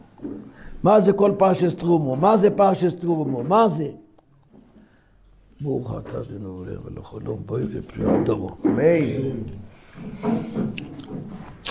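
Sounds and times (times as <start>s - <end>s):
speech: 0.8s - 4.0s, 5.6s - 11.5s
person eating with moist chewing: 10.6s - 11.6s.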